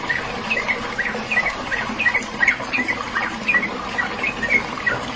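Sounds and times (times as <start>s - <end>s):
bird chirps: 0.1s - 5.0s.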